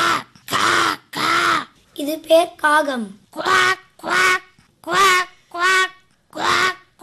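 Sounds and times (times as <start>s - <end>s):
person imitating a duck quacking: 0.0s - 1.8s, 3.3s - 7.0s
speech: 2.0s - 4.3s.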